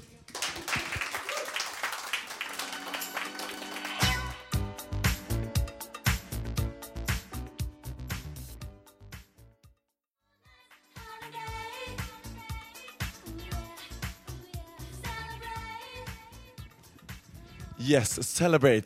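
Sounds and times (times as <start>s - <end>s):
crowd applauding: 0.0s - 4.5s
loud rhythmic music with a heavy beat: 2.7s - 9.5s, 10.8s - 18.0s
speech: 17.8s - 18.8s.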